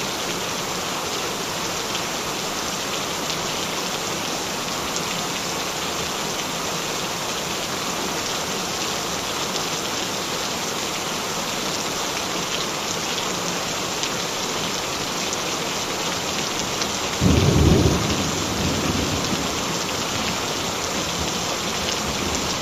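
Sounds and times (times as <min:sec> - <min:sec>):
gentle rain: 0:00.0 - 0:22.6.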